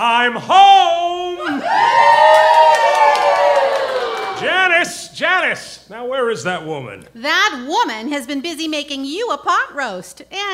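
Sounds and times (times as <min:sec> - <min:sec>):
speech: 0:00.0 - 0:02.1, 0:04.8 - 0:10.5
live television studio audience cheering at a sitcom taping: 0:01.3 - 0:04.9.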